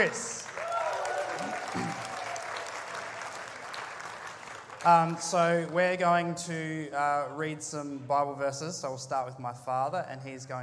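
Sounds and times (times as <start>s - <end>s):
speech: 0.0s - 0.4s, 4.8s - 10.6s
audience cheering: 0.0s - 4.0s.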